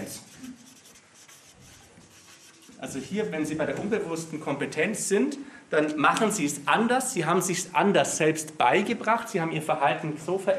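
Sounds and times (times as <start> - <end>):
pen scratching on a surface while handwriting the word Training: 0.2 - 2.8
speech: 2.8 - 10.5.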